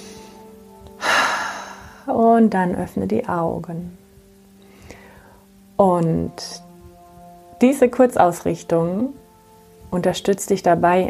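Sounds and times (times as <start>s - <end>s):
deep breath in through the nose, out through the mouth in a relaxation exercise: 1.0s - 2.1s, 4.6s - 5.6s
speech: 2.1s - 4.0s, 5.8s - 6.6s, 7.6s - 9.2s, 9.9s - 11.0s.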